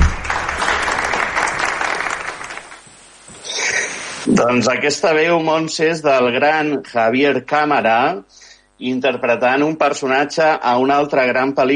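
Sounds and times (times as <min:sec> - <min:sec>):
crowd applause: 0:00.0 - 0:02.8
speech: 0:04.4 - 0:11.7.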